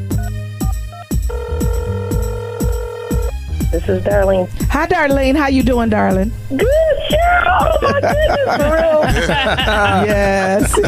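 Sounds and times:
telephone ringing as a call is placed: 0:01.3 - 0:03.3
speech: 0:03.8 - 0:10.8
laughter: 0:07.4 - 0:10.8.

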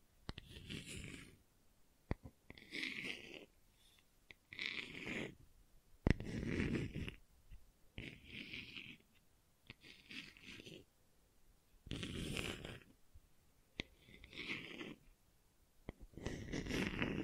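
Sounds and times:
gentle soft rasping scratching: 0:00.3 - 0:01.4, 0:02.5 - 0:05.4, 0:06.1 - 0:07.2, 0:08.0 - 0:10.9, 0:11.9 - 0:13.0, 0:13.8 - 0:15.1, 0:15.9 - 0:17.2.

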